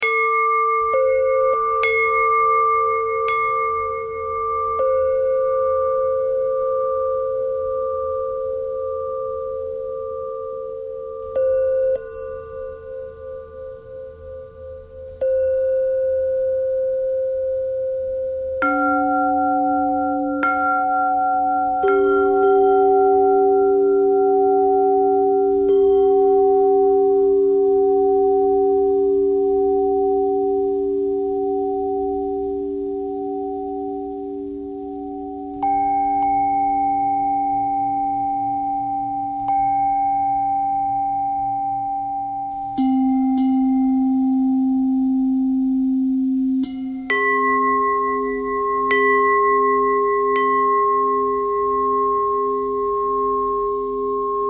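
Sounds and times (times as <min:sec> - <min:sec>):
pentatonic bell melody: 0:00.0 - 0:54.4.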